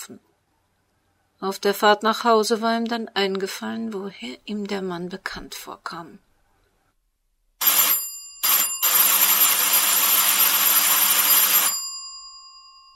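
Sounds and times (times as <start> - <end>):
speech: 0.0 - 0.3, 1.4 - 6.2
front door doorbell ringing: 7.6 - 12.9.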